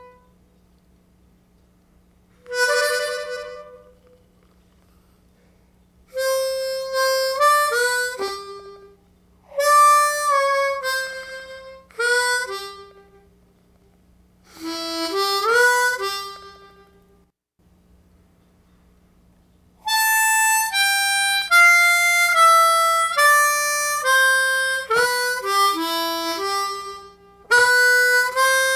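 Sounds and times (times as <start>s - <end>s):
basic slow blues music: 2.4s - 5.0s, 6.1s - 13.9s, 14.5s - 17.2s, 19.8s - 28.7s.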